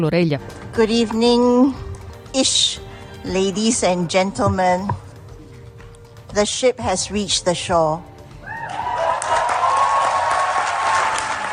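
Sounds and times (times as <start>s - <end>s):
speech: 0.0s - 5.0s, 6.3s - 8.1s
cheering: 8.4s - 11.5s
audience applause: 8.6s - 11.5s.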